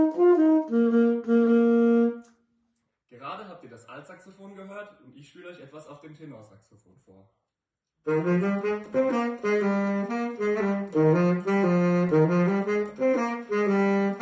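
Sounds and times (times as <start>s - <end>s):
saxophone: 0.0s - 2.4s, 8.1s - 14.1s.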